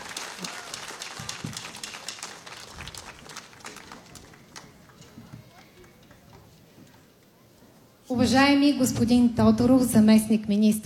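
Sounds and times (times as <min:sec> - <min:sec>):
audience applause: 0:00.0 - 0:06.6
speech: 0:08.1 - 0:10.8.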